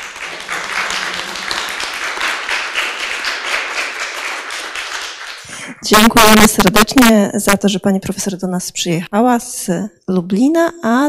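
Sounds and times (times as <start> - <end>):
audience applause: 0.0 - 5.6
speech: 5.8 - 11.0.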